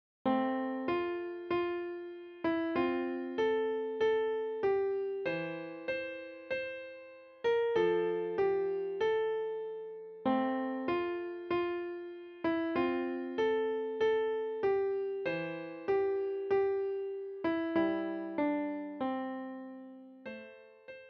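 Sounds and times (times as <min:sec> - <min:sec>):
piano: 0:00.2 - 0:21.0.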